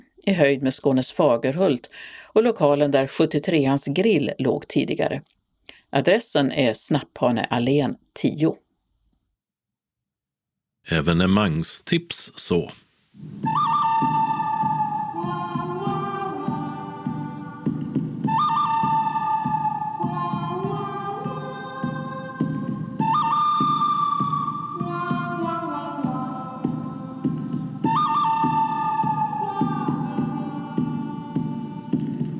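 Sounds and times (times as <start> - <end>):
speech: 0.3 - 8.6, 10.8 - 14.1
whistled spaghetti western film music: 13.4 - 32.3.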